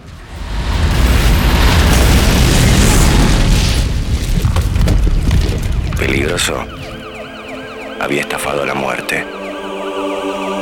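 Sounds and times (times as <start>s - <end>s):
two trucks catching fire and exploding: 0.0s - 6.2s
speech: 6.3s - 6.9s, 8.0s - 9.4s.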